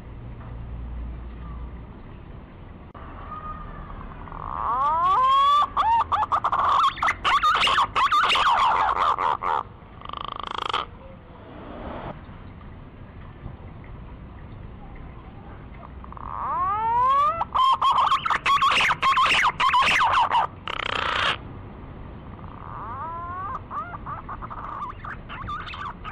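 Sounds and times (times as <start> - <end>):
green pigeon lure call of sweeping quavering whistles: 4.7 - 9.2, 16.4 - 21.4, 22.6 - 26.1.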